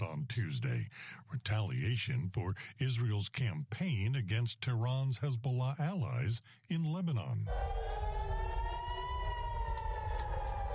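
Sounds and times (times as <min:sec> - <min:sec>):
speech: 0:00.4 - 0:08.2
air raid sirens blaring in Israel: 0:07.5 - 0:10.7.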